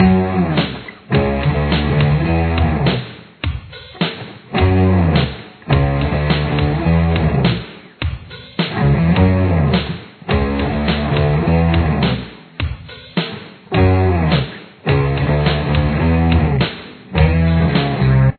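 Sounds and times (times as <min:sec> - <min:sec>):
guitar with chorus effect: 0:00.0 - 0:03.0, 0:04.5 - 0:07.6, 0:08.7 - 0:12.3, 0:13.7 - 0:18.3.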